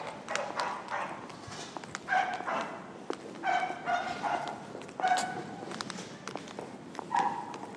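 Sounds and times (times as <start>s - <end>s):
noisy dog in Worcester market: 0.0s - 1.2s, 2.1s - 5.5s, 7.1s - 7.6s.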